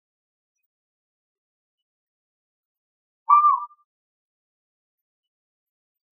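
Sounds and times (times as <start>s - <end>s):
Asian barred owlet Glaucidium cuculoides calling: 3.3s - 3.8s.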